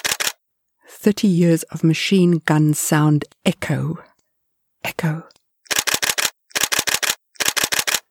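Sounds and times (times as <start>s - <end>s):
camera shutter clicks: 0.0s - 0.4s, 5.7s - 8.0s
speech: 1.0s - 4.1s, 4.8s - 5.4s.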